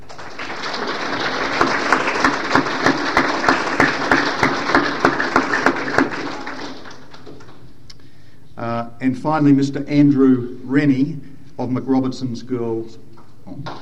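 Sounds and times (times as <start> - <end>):
audience applause: 0.0 - 7.6
speech: 9.1 - 13.7.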